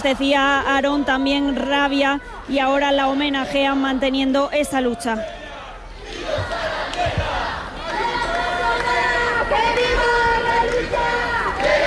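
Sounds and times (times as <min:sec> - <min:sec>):
speech: 0:00.0 - 0:05.4
protest crowd chanting outside Spain's Congress of Deputies in Madrid: 0:05.2 - 0:11.8.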